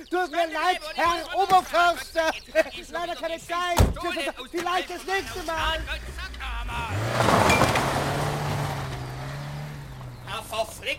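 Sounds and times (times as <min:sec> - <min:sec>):
speech: 0:00.0 - 0:07.4, 0:10.5 - 0:10.9
car pulling away with engine revving: 0:05.0 - 0:10.9.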